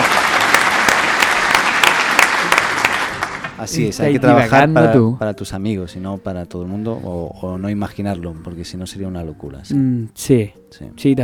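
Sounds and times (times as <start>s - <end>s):
applause sound effect: 0.0s - 3.7s
speech: 3.6s - 11.2s.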